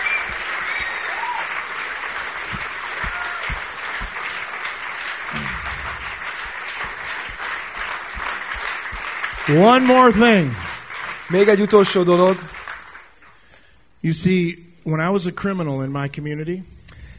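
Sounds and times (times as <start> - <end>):
audience applause: 0.0 - 13.2
speech: 9.5 - 10.6, 11.3 - 12.5, 14.0 - 16.7.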